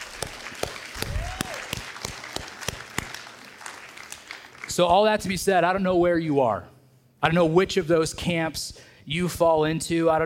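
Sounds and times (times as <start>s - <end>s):
church audience applause: 0.0s - 4.7s
speech: 4.8s - 10.2s.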